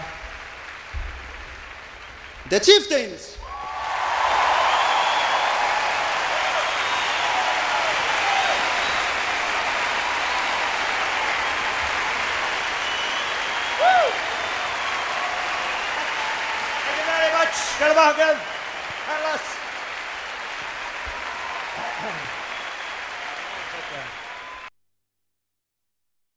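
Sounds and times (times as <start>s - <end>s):
loud audience applause for a performing band: 0.0s - 24.7s
speech: 2.5s - 3.4s
whistle: 4.6s - 5.6s, 6.6s - 7.7s, 8.4s - 9.3s, 12.6s - 16.2s, 22.4s - 23.2s.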